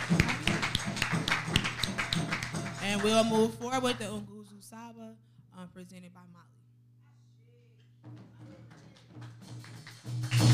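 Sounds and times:
audience hand clapping: 0:00.0 - 0:03.5, 0:08.2 - 0:10.5
speech: 0:02.9 - 0:04.3, 0:05.1 - 0:06.5.

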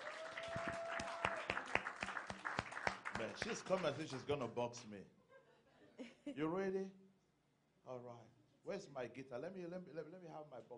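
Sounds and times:
audience applause: 0:00.0 - 0:04.4
speech: 0:03.2 - 0:05.2, 0:06.3 - 0:07.0, 0:07.9 - 0:10.7.

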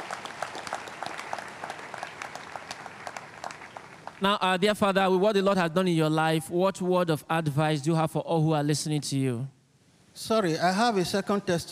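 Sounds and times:
audience applause: 0:00.0 - 0:04.2
speech: 0:04.2 - 0:09.6, 0:10.2 - 0:11.6.

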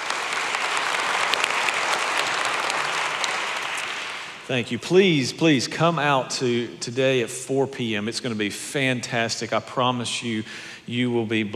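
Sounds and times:
in-room audience applause at a church service: 0:00.0 - 0:04.5
speech: 0:04.5 - 0:11.5.

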